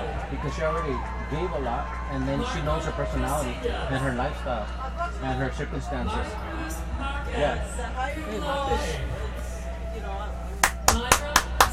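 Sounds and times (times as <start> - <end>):
speech: 0.3 - 9.2, 10.0 - 10.5
sharp hand claps: 10.6 - 11.7.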